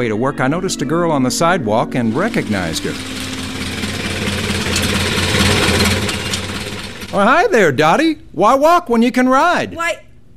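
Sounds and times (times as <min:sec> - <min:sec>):
speech: 0:00.0 - 0:03.3, 0:07.1 - 0:10.1
Model A coupe car engine: 0:02.0 - 0:07.2.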